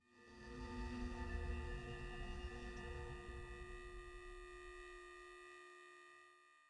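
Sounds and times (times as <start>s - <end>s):
hum: 0.3s - 5.5s.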